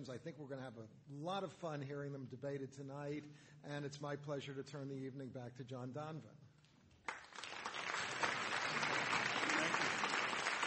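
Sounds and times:
speech: 0.0 - 6.4
audience applause: 7.1 - 10.6.

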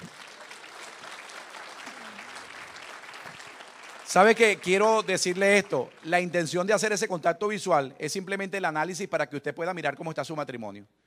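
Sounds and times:
audience applauding: 0.0 - 6.9
speech: 4.1 - 11.0.

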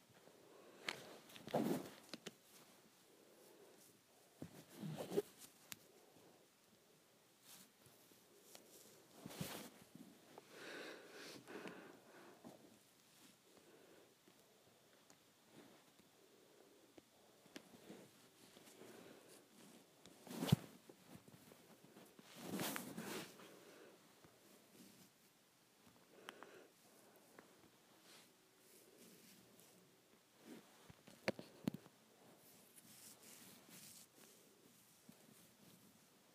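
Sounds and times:
hands playing with hair: 0.7 - 6.0, 7.4 - 11.8, 17.4 - 25.4, 27.0 - 36.1.

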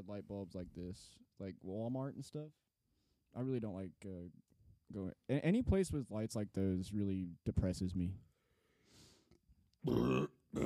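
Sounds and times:
speech: 0.0 - 2.6, 3.3 - 8.3, 9.8 - 10.6
loud burp: 9.8 - 10.6.

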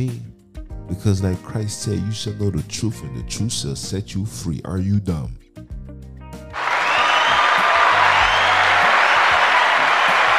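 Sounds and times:
speech: 0.0 - 0.3, 0.9 - 5.4
applause: 6.6 - 10.3.

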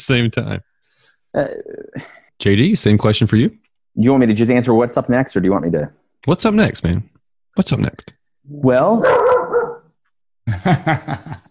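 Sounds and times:
speech: 0.0 - 0.7, 1.3 - 9.3, 10.5 - 11.4
female dog barking at passers-by outside her house: 9.0 - 9.9
laughter: 10.5 - 11.5.

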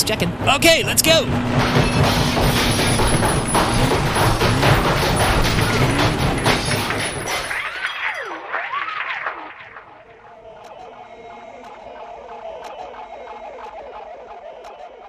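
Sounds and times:
speech: 0.0 - 3.5
rock crusher crushing a computer: 1.3 - 9.9.

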